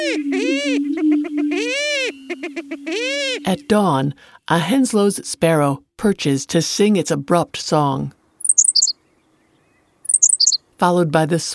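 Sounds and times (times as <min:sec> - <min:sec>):
greater prairie chickens calling in courtship whoops: 0:00.0 - 0:04.1
greater prairie chicken short hooting pulses: 0:00.0 - 0:04.2
speech: 0:03.5 - 0:08.2, 0:10.8 - 0:11.5.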